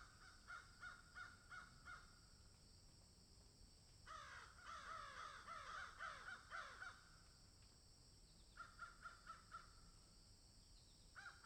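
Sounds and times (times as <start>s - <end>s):
crow giving hoarse downslurred caws: 0.0s - 2.1s, 4.1s - 7.1s, 8.6s - 9.7s, 11.2s - 11.4s.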